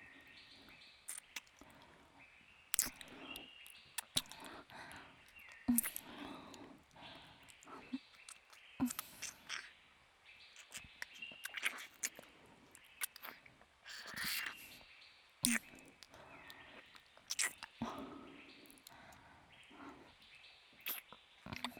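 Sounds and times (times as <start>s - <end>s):
ear licking: 1.1s - 1.9s, 2.8s - 9.7s, 10.6s - 14.7s, 15.4s - 19.1s.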